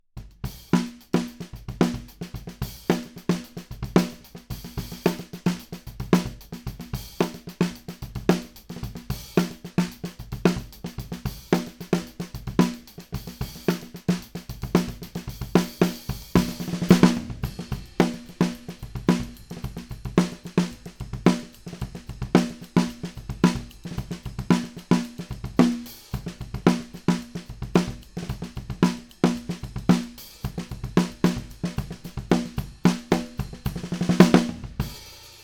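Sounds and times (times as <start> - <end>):
snare drum: 0.2 - 35.4.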